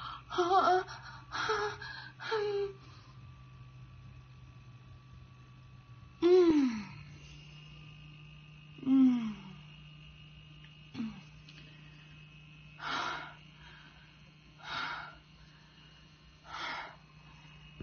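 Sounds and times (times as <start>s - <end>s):
person moaning: 0.0s - 2.8s, 6.2s - 7.0s, 8.8s - 9.6s, 11.0s - 11.3s.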